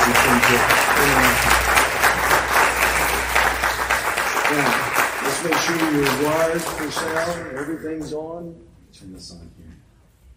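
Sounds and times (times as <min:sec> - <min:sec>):
Christ Church congregation applause welcoming a visiting pastor: 0:00.0 - 0:08.4
speech: 0:00.4 - 0:01.7, 0:04.5 - 0:09.8.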